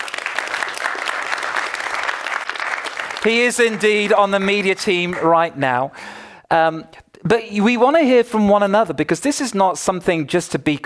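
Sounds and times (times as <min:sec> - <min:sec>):
audience applause: 0:00.0 - 0:05.5
speech: 0:03.2 - 0:10.8.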